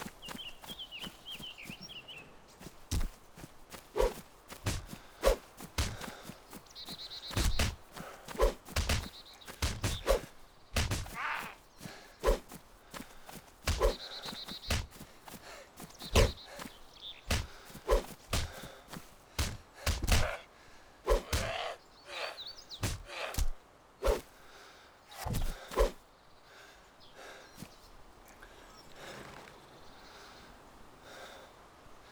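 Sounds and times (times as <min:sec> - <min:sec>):
action fight: 0:02.9 - 0:06.6, 0:07.3 - 0:16.7, 0:17.3 - 0:20.5, 0:21.1 - 0:24.3, 0:25.1 - 0:26.0.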